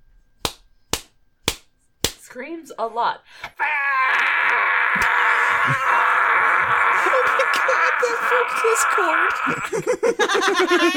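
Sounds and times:
spanking slaps: 0.4s - 2.3s, 4.9s - 5.2s
speech: 2.3s - 6.0s, 8.0s - 10.9s
laughter: 5.0s - 10.9s.

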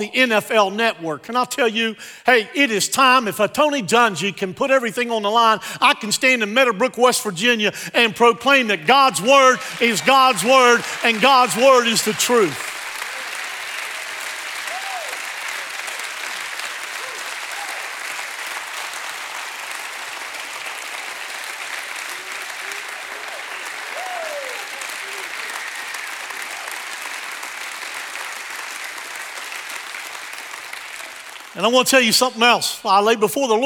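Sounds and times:
speech: 0.0s - 12.7s, 31.6s - 33.6s
audience applause: 8.3s - 31.8s.

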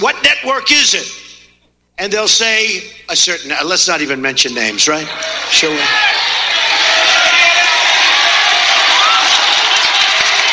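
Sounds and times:
speech: 0.0s - 1.2s, 2.0s - 6.5s
crowd cheering wildly: 5.0s - 10.5s.

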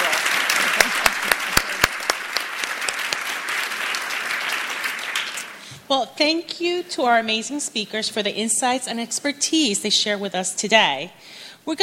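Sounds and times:
audience applause for panelists: 0.0s - 5.6s
speech: 5.9s - 11.8s.

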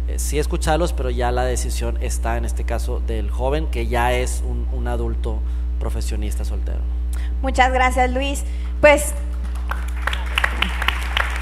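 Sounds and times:
steady low electrical hum: 0.0s - 11.4s
speech: 0.1s - 9.3s
scattered audience claps: 9.3s - 11.4s.

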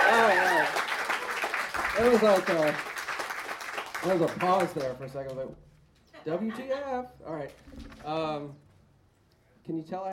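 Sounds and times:
whoops and cheering voices: 0.0s - 1.2s
crowd clapping: 0.0s - 5.4s
speech: 2.0s - 2.9s, 4.0s - 8.6s, 9.6s - 10.1s.

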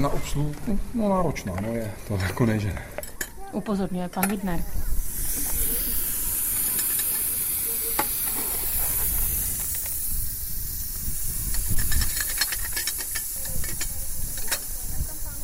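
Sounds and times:
speech: 0.0s - 5.4s
steam locomotive hissing steam: 4.5s - 15.4s.

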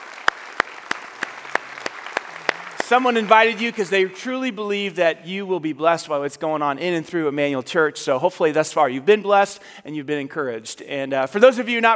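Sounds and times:
hand clapping greeting first-time church guests: 0.0s - 3.9s
speech: 2.9s - 11.9s.

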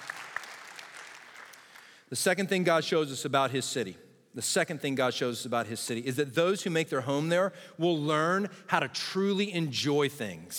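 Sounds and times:
audience clapping: 0.0s - 2.0s
speech: 2.1s - 10.5s.

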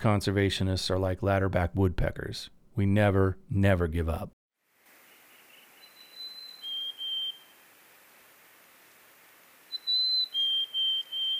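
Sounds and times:
speech: 0.0s - 4.4s
mountain chickadee call: 5.8s - 7.6s, 9.7s - 11.3s.

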